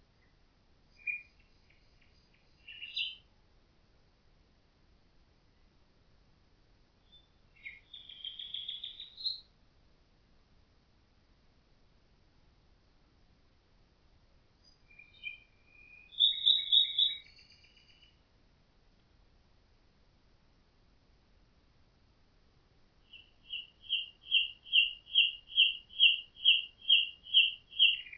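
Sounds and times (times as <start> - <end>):
common nightingale singing with whistled notes and fast rattling trill: 0.2 - 3.3, 7.0 - 9.5, 14.6 - 18.3, 23.0 - 28.1.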